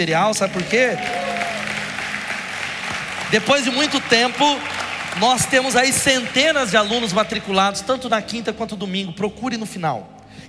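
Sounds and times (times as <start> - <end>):
speech: 0.0 - 1.3, 3.3 - 10.4
audience applause: 0.2 - 7.5.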